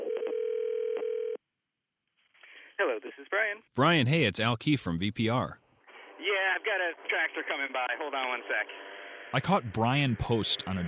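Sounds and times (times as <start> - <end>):
telephone tone as a call is placed: 0.0 - 1.4
speech: 2.8 - 5.6, 6.6 - 10.8.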